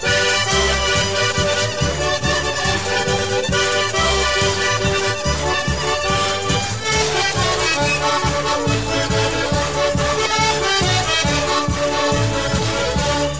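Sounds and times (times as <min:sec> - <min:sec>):
polka music: 0:00.0 - 0:13.3.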